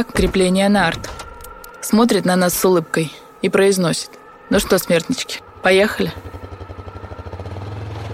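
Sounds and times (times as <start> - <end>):
speech: 0.0 - 1.2, 1.8 - 6.4
snowmobile engine: 4.5 - 8.1.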